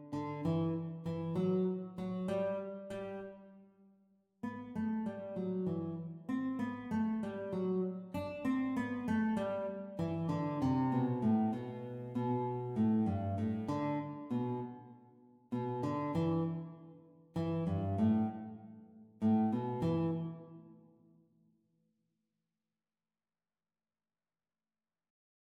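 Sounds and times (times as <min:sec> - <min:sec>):
guitar duet playalong practice: 0:00.0 - 0:03.4, 0:04.4 - 0:14.9, 0:15.5 - 0:20.8.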